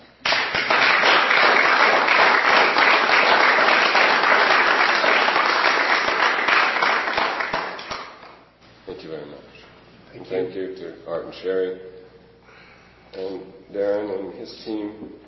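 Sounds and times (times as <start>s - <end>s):
audience applause: 0.2s - 8.3s
speech: 11.3s - 11.9s, 14.1s - 15.2s.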